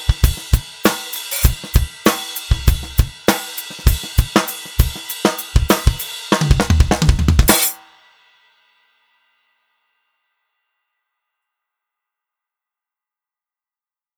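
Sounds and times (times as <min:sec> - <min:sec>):
drum kit: 0:00.0 - 0:07.8.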